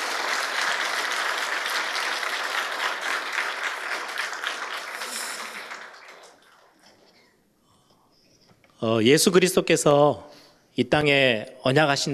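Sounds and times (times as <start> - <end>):
audience applauding: 0.0 - 6.9
speech: 8.8 - 12.1.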